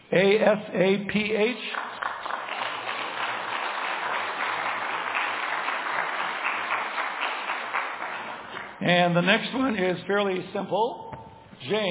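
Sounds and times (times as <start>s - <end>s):
speech: 0.1s - 1.9s, 8.8s - 11.9s
crowd clapping: 1.4s - 9.8s.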